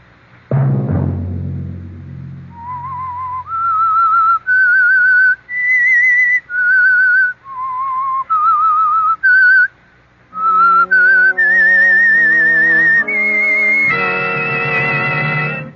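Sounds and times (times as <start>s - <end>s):
low struck chord: 0.5s - 3.2s
instrumental accompaniment: 0.5s - 3.6s, 10.3s - 15.7s
eerie whistled tune: 2.5s - 9.7s, 10.3s - 15.7s.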